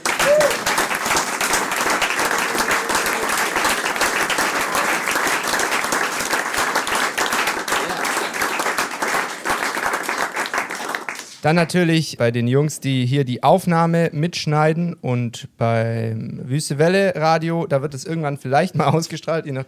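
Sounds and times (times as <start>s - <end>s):
person whooping: 0.0s - 0.9s, 2.1s - 5.2s
audience applause: 0.0s - 11.4s
speech: 11.4s - 19.6s.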